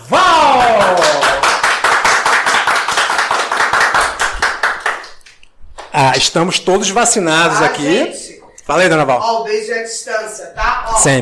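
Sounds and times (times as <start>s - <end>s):
group applause: 0.0s - 5.9s
speech: 6.2s - 11.2s.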